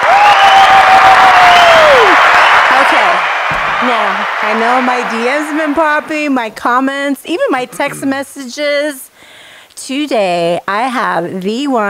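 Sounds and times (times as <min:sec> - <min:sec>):
crowd applause: 0:00.0 - 0:06.4
speech: 0:03.9 - 0:09.1, 0:09.8 - 0:11.8.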